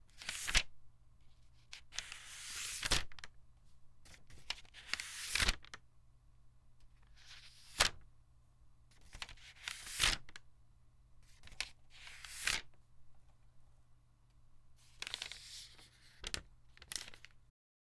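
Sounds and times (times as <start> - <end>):
pages turning: 0.2 - 0.6, 1.6 - 3.3, 4.1 - 5.8, 7.1 - 8.0, 9.0 - 10.4, 11.2 - 12.7, 14.8 - 17.4.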